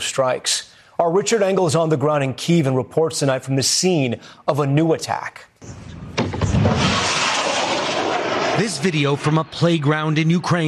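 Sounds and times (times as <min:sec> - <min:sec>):
speech: 0:00.2 - 0:06.0, 0:08.6 - 0:10.6
jet-powered Russian drone ripping through the sky over Kyiv: 0:05.6 - 0:10.6.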